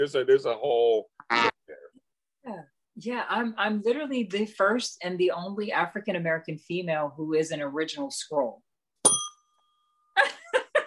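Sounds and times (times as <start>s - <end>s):
speech: 0.0s - 1.6s, 3.0s - 8.6s
bell ding sound effect: 9.0s - 10.0s.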